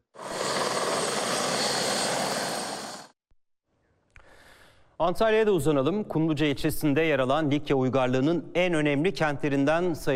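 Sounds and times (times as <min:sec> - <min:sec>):
helicopter flying: 0:00.0 - 0:03.2
speech: 0:05.0 - 0:10.1.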